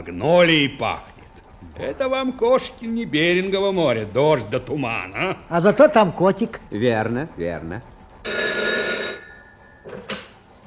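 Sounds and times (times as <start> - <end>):
speech: 0.0 - 1.1, 1.8 - 7.9
telephone bell ringing, radio room calling: 8.2 - 10.3
short clattering knocks: 9.7 - 10.6.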